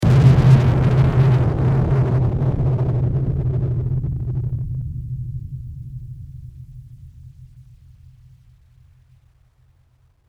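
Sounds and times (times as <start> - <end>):
bomb exploding: 0.0 - 5.8.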